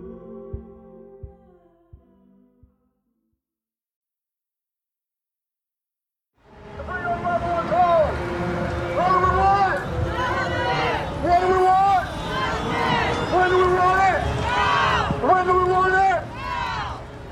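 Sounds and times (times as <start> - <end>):
street rally crowd chanting: 6.7 - 17.2.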